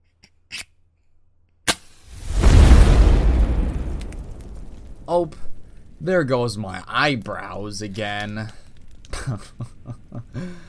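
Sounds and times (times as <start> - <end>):
fire being lit, flame roaring: 2.1 - 10.1
speech: 5.1 - 8.6, 9.2 - 9.7, 10.3 - 10.6
small ticks and snap while lighting a fire: 8.0 - 9.3.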